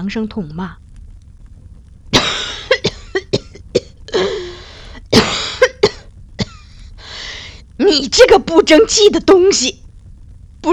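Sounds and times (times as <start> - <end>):
speech: 0.0 - 0.8, 7.9 - 9.8
person coughing in smoke: 2.2 - 6.7.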